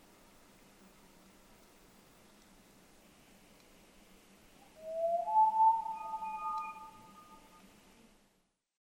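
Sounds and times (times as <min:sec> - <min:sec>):
Common Loon Gavia immer: 0:04.7 - 0:07.6.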